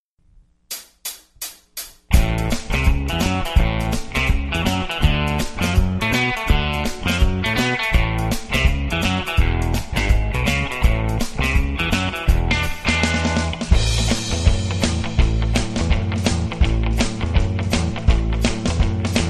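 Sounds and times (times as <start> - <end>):
rock guitar: 2.1 - 19.2.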